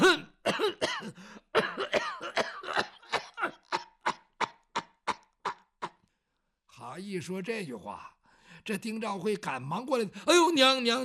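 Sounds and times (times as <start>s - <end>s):
voice imitating an old woman coughing: 0.0s - 6.0s
speech: 7.0s - 8.1s, 8.7s - 11.0s.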